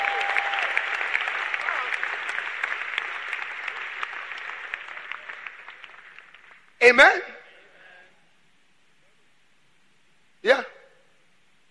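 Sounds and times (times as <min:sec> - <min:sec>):
audience clapping hands: 0:00.0 - 0:06.8
speech: 0:06.8 - 0:07.4.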